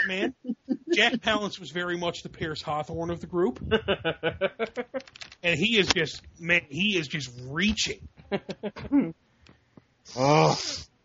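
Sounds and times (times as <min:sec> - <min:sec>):
speech: 0:00.0 - 0:09.2, 0:10.1 - 0:10.9
loud nasal inhalation: 0:10.1 - 0:10.9
short vocal bursts: 0:10.1 - 0:10.9.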